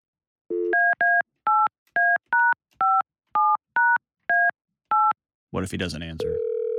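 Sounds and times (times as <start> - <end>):
telephone number being dialed: 0.5 - 5.2, 6.2 - 6.7
speech: 5.5 - 6.5.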